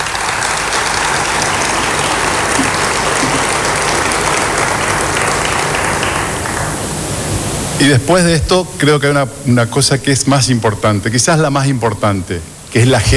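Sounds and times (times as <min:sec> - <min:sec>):
crowd applause: 0:00.0 - 0:07.2
speech: 0:07.8 - 0:13.1.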